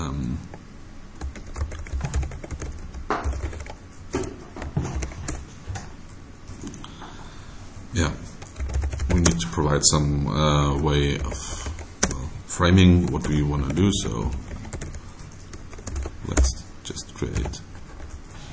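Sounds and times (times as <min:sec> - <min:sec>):
Java code being typed on a computer keyboard: 0:01.2 - 0:05.6, 0:08.2 - 0:09.7, 0:11.0 - 0:18.4
speech: 0:09.7 - 0:11.6, 0:12.6 - 0:14.5.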